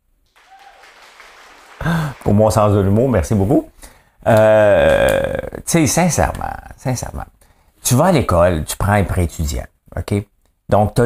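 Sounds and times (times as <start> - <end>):
faint whistle or cheer: 0.3 - 2.3
applause: 0.3 - 3.3
speech: 2.3 - 11.0.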